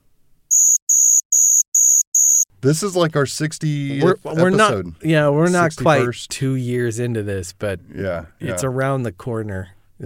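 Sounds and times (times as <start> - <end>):
crickets chirping sound effect: 0.5 - 2.4
speech: 2.6 - 9.8.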